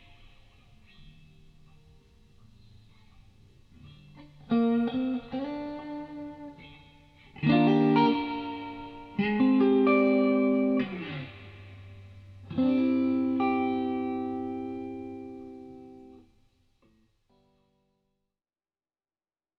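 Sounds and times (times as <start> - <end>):
guitar: 0.0 - 18.1.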